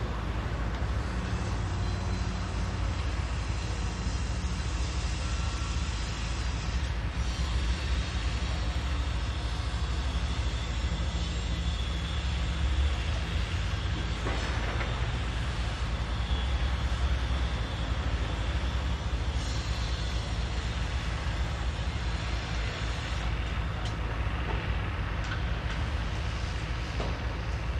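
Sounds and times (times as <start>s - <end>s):
construction works in an industrial city: 0.0s - 27.7s.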